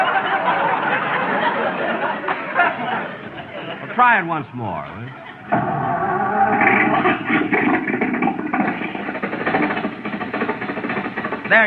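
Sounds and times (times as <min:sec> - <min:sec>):
laughter: 0:00.0 - 0:05.6
speech: 0:04.0 - 0:06.2
old car engine starting up: 0:05.3 - 0:11.6.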